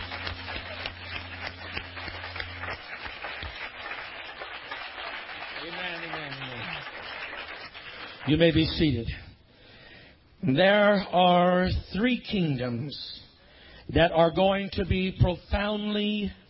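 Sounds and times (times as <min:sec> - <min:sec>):
hand clapping: 0:00.0 - 0:08.4
speech: 0:08.3 - 0:09.2, 0:10.4 - 0:13.2, 0:13.9 - 0:16.4.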